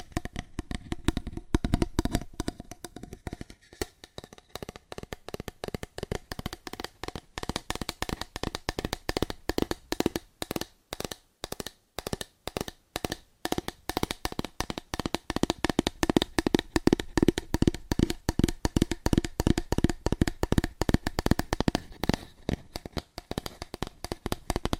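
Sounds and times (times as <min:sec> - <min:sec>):
fingers tapping rapidly and hard on cardboard: 0:00.0 - 0:24.7.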